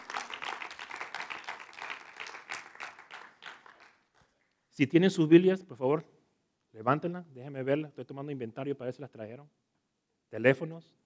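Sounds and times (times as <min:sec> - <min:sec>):
audience applauding: 0:00.0 - 0:04.2
speech: 0:04.8 - 0:06.2, 0:06.8 - 0:09.6, 0:10.3 - 0:11.0.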